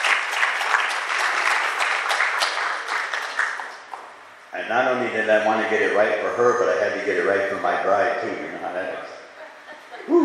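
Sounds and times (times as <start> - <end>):
crowd applauding: 0.0 - 4.1
speech: 4.6 - 9.2.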